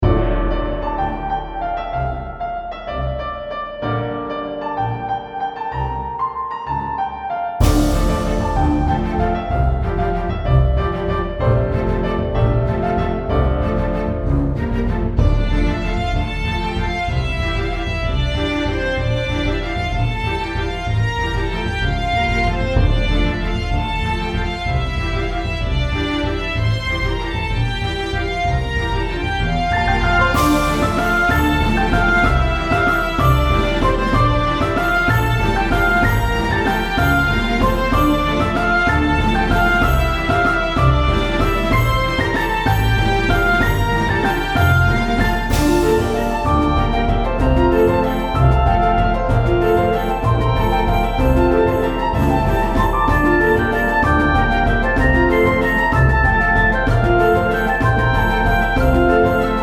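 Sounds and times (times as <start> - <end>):
orchestral music: 0.0 - 59.6.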